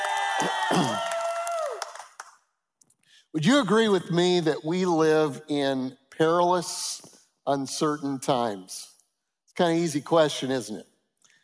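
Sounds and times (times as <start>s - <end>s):
small group cheering and whooping in a large auditorium: 0.0s - 2.1s
people clapping: 0.0s - 2.6s
speech: 0.4s - 1.1s, 3.3s - 8.9s, 9.6s - 10.9s.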